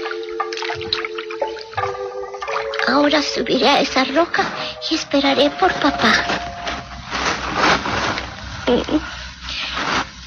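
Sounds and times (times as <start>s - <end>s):
cool fresh water trickling and splashing around resting feet: 0.0s - 4.3s
steady low tone: 0.0s - 7.6s
speech: 2.9s - 6.5s, 8.7s - 9.1s.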